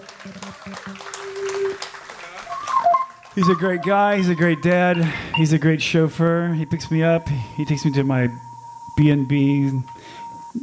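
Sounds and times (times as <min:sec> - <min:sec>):
audience applause: 0:00.0 - 0:05.6
speech: 0:00.2 - 0:01.9, 0:03.4 - 0:10.0.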